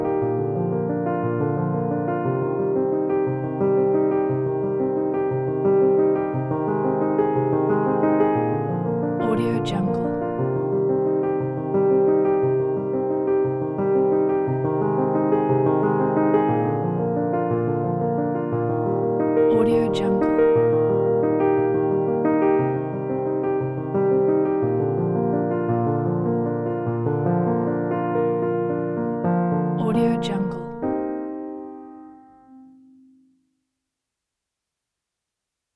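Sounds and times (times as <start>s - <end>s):
emotional piano arpeggio: 0.0s - 33.2s.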